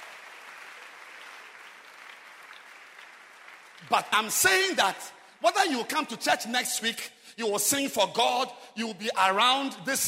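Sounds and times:
audience clapping hands: 0.0 - 4.8
speech: 3.8 - 10.0.

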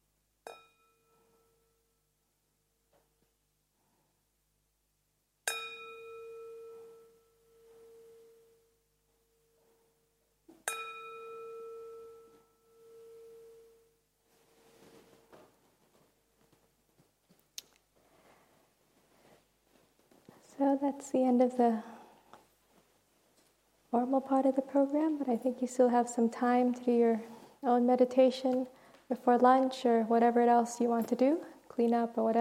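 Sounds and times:
meditation bell ringing: 0.5 - 1.9, 5.5 - 8.7, 10.7 - 14.0
speech: 20.6 - 21.9, 24.0 - 32.4.

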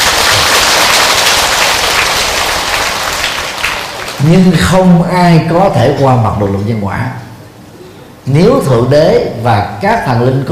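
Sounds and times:
crowd applause: 0.0 - 4.6
speech: 4.2 - 7.2, 8.2 - 10.5.

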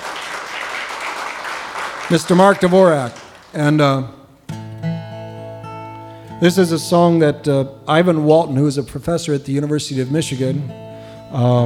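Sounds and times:
audience applause: 0.0 - 3.8
speech: 2.1 - 4.2, 6.4 - 11.6.

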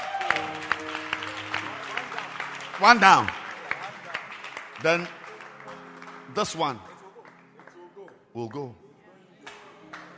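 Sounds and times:
audience clapping hands: 0.0 - 8.7, 9.4 - 10.1
speech: 2.8 - 3.4, 4.8 - 5.2, 6.4 - 6.9, 8.4 - 8.8.

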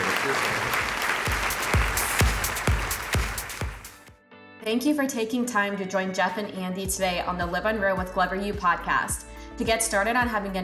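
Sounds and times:
audience applause: 0.0 - 4.0
speech: 4.7 - 10.6.

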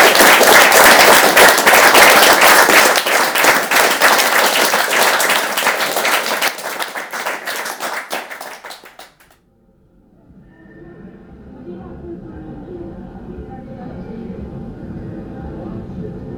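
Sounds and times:
audience applause: 0.0 - 9.4.

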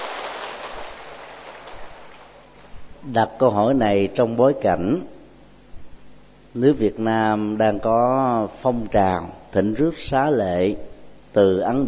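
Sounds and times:
audience applause: 0.0 - 2.8
speech: 3.0 - 5.1, 6.6 - 11.8.

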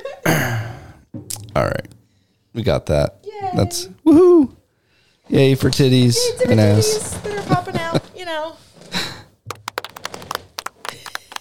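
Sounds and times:
speech: 0.2 - 0.6, 1.6 - 1.9, 2.6 - 4.6, 5.3 - 7.3, 8.3 - 9.1
people clapping: 9.5 - 11.3.

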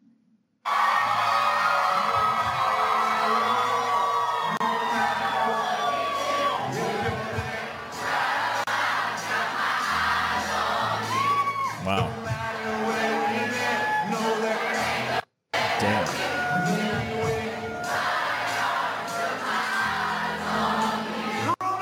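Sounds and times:
concert crowd cheering: 0.7 - 15.0, 15.6 - 21.8.

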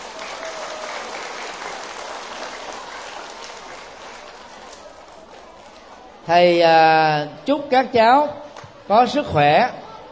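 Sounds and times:
large applause from children: 0.0 - 5.4
speech: 6.3 - 9.8.

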